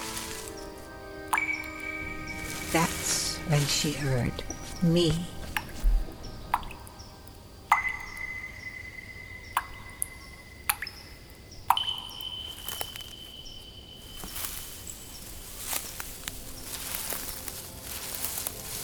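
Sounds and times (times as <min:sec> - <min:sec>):
soft steady hiss: 0:00.0 - 0:18.8
water dripping in a stone fountain: 0:00.0 - 0:18.8
speech: 0:02.7 - 0:05.4.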